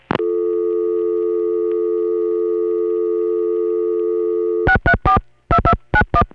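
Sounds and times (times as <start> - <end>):
telephone dialing on the 628 demonstrator through Broadway 24A: 0.2 - 6.2.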